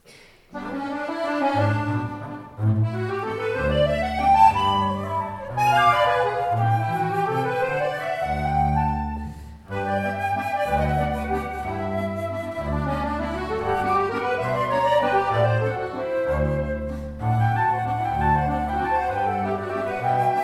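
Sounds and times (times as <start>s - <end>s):
musette music: 0.0s - 20.4s.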